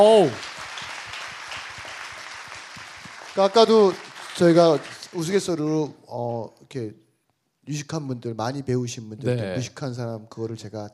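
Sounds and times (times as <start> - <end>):
speech: 0.0 - 0.5, 3.4 - 7.0, 7.7 - 10.9
crowd applauding: 0.0 - 5.6.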